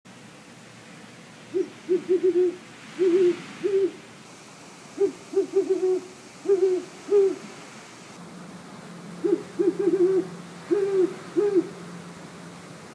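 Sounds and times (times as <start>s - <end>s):
owl: 1.5s - 4.0s, 5.0s - 7.5s, 9.2s - 11.8s.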